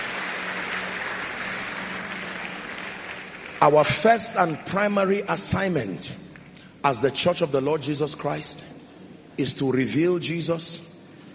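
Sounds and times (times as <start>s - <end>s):
audience clapping hands: 0.0s - 5.3s
speech: 3.6s - 8.8s, 9.4s - 10.9s.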